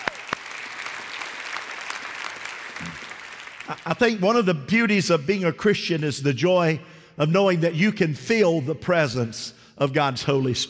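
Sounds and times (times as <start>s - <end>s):
audience applause, hand clapping: 0.0s - 4.0s
speech: 3.7s - 10.6s.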